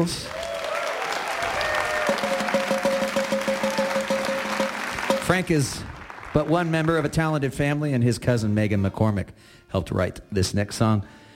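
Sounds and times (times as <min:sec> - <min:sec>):
speech: 0:00.0 - 0:00.4, 0:05.4 - 0:11.2
audience round of applause: 0:00.0 - 0:07.6.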